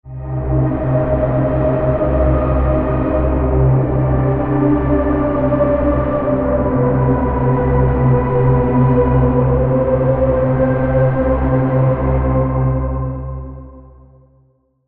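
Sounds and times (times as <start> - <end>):
synth pad: 0.1 - 14.0.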